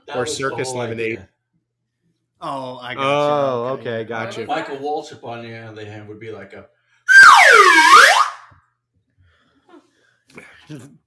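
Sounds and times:
speech: 0.1 - 1.3, 2.4 - 8.1, 10.3 - 11.0
slide whistle: 7.1 - 8.5.

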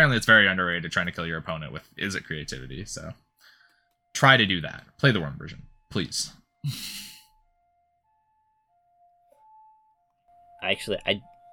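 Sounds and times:
speech: 0.0 - 3.2, 4.2 - 7.1, 10.6 - 11.3
ambulance siren wailing in a two-tone pattern: 1.9 - 11.5.

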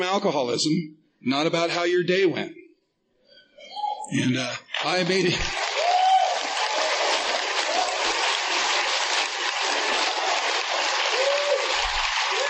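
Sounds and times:
speech: 0.0 - 2.6, 3.6 - 5.7
audience applause: 4.7 - 12.4.

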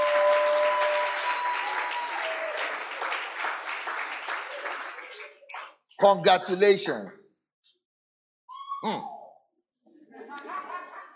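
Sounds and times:
crowd applauding: 0.0 - 6.2
speech: 6.0 - 7.2
laughter: 10.1 - 11.1.

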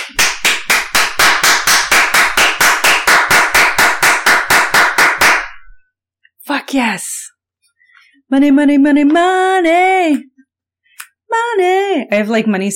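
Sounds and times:
person clapping hands: 0.0 - 5.7
speech: 6.7 - 7.1, 8.3 - 10.3, 11.3 - 12.7.

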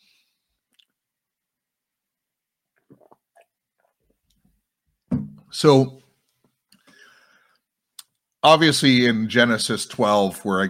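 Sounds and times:
person drinking a sip of water: 2.7 - 4.5
speech: 5.5 - 6.0, 8.4 - 10.6.

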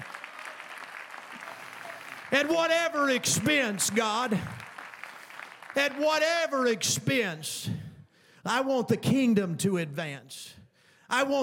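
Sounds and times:
audience clapping: 0.0 - 6.8
speech: 2.3 - 4.6, 5.8 - 7.8, 8.4 - 11.4.

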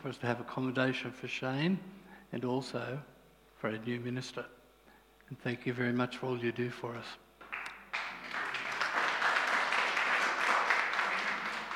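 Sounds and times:
speech: 0.0 - 4.6, 5.3 - 7.2
audience clapping: 7.4 - 11.7.

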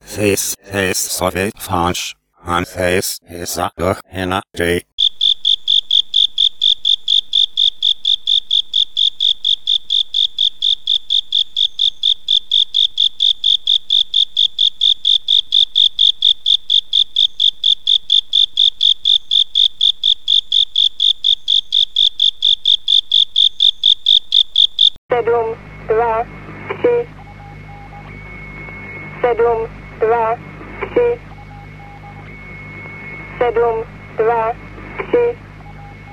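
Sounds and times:
speech: 0.2 - 4.9, 25.2 - 27.2, 29.3 - 31.3, 33.4 - 35.4
Japanese burrowing cricket song: 5.0 - 25.0.

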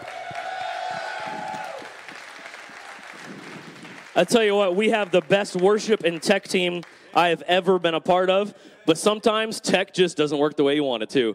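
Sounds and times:
whoops: 0.0 - 3.2
crowd clapping and cheering: 0.0 - 7.8
speech: 4.2 - 11.3.

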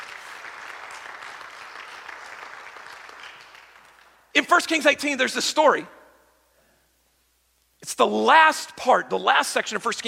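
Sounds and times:
audience applauding: 0.0 - 4.2
speech: 4.4 - 6.0, 8.0 - 10.0.

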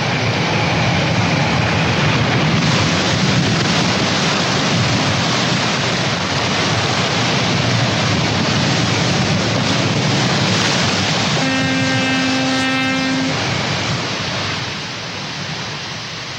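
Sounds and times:
pounding sea waves: 0.0 - 16.3
storm wind: 0.0 - 16.3
steady low horn-like tone: 11.4 - 13.4.

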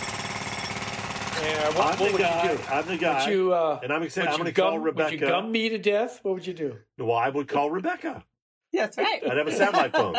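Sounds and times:
pneumatic jackhammer: 0.0 - 3.2
speech: 1.4 - 10.1
laughter: 9.2 - 10.1.

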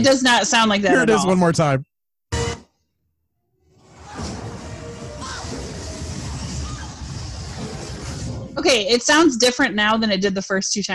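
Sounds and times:
speech: 0.0 - 1.9, 8.6 - 10.9
loud crash: 3.8 - 9.0.

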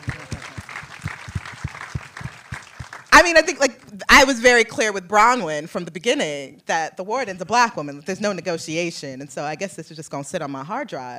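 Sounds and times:
audience applause: 0.0 - 3.2
speech: 3.2 - 11.1.

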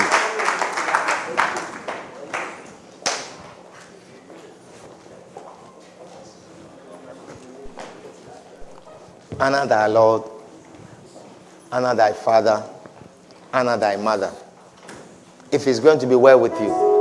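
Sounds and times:
audience clapping: 0.0 - 3.3
speech: 9.4 - 10.3, 11.7 - 12.8, 13.5 - 14.4, 15.5 - 16.8.

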